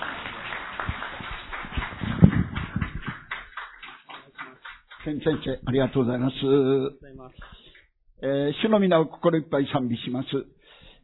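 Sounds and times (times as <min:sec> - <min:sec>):
audience applause welcoming the speaker: 0:00.0 - 0:06.1
speech: 0:05.0 - 0:07.6, 0:08.2 - 0:10.6.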